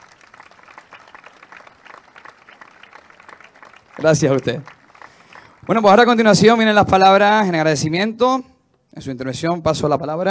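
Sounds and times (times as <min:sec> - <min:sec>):
audience applause: 0:00.0 - 0:06.2
speech: 0:04.0 - 0:04.7, 0:05.7 - 0:10.2.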